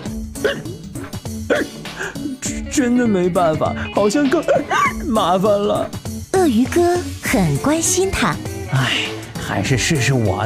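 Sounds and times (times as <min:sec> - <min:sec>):
person voicing a zebra coughing after choking on a drink: 0:00.3 - 0:02.4
speech: 0:00.4 - 0:00.8, 0:01.5 - 0:10.4.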